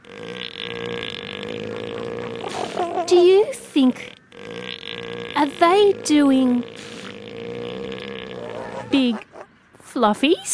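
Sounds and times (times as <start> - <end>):
elephant seal bellowing: 0.0 - 9.6
speech: 3.1 - 4.2, 5.6 - 6.9, 8.9 - 9.2, 10.0 - 10.5.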